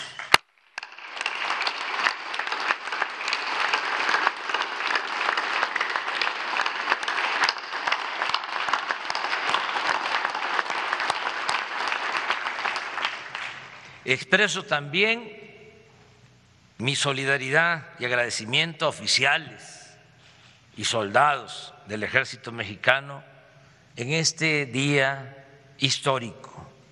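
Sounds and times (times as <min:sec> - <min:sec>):
sustained applause from a large crowd: 0:00.0 - 0:14.0
speech: 0:14.1 - 0:15.4, 0:16.8 - 0:19.8, 0:20.8 - 0:23.3, 0:24.0 - 0:26.5.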